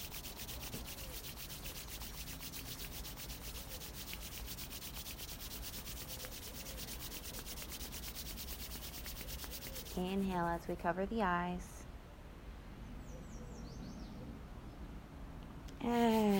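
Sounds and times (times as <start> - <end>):
hands rubbing together to warm them: 0.0 - 10.5, 15.8 - 16.3
speech: 10.0 - 11.7.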